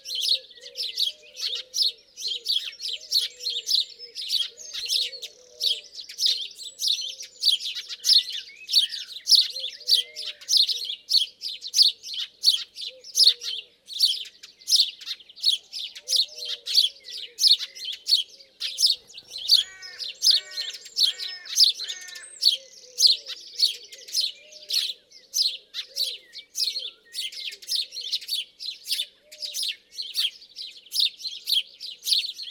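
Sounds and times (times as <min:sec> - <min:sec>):
house sparrow chirping: 0:00.0 - 0:32.5.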